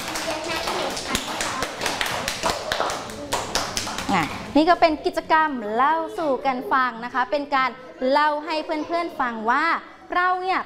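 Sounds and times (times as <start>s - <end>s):
children clapping hands: 0.0s - 4.5s
speech: 4.2s - 10.6s.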